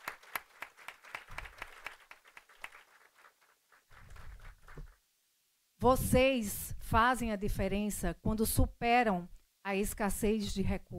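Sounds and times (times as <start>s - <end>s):
audience applause: 0.0s - 4.9s
speech: 5.8s - 10.9s.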